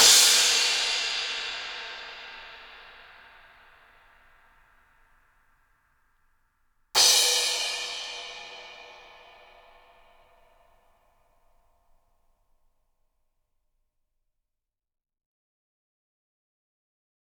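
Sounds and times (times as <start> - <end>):
cymbal crashes: 0.0 - 3.9, 7.0 - 10.4.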